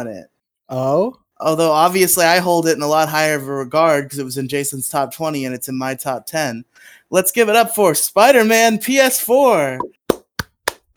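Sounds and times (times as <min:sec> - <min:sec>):
speech: 0:00.0 - 0:10.0
one person clapping: 0:10.1 - 0:10.9.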